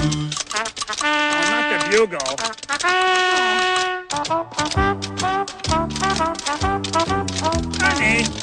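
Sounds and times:
speech: 0:00.0 - 0:00.4, 0:01.8 - 0:05.2, 0:06.2 - 0:08.4
tap dancing feet tapping: 0:00.0 - 0:08.4.

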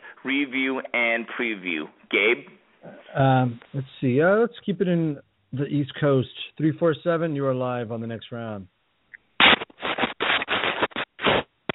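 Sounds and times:
speech: 0:00.2 - 0:08.7
DJ record cutting and scratching over a speakerphone: 0:09.4 - 0:11.7.

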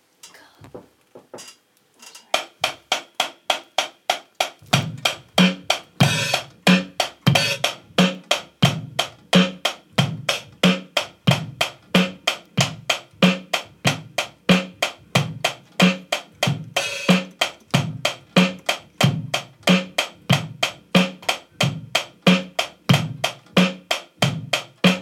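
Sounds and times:
live drum recording: 0:00.0 - 0:25.0.

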